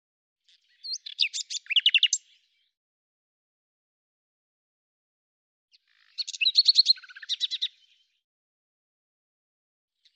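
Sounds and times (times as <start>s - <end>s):
bird song: 0.4s - 2.8s, 5.7s - 8.3s, 10.0s - 10.1s.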